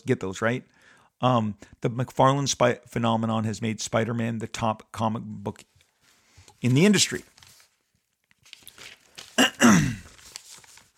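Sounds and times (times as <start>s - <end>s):
speech: 0.0s - 5.7s, 6.6s - 7.3s
faint breathing: 0.7s - 1.8s
rustling: 5.8s - 9.4s, 10.0s - 10.9s
throat clearing from someone with a rough morning voice: 9.4s - 10.1s.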